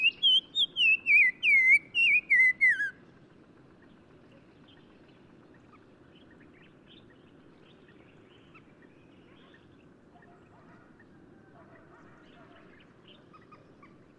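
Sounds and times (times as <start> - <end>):
black-crowned tchagra whistled song in Morocco: 0.0 - 3.0.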